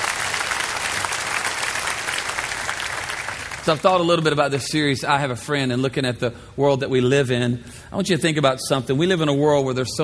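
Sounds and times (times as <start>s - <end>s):
church audience clapping hands: 0.0s - 4.0s
speech: 3.6s - 10.0s.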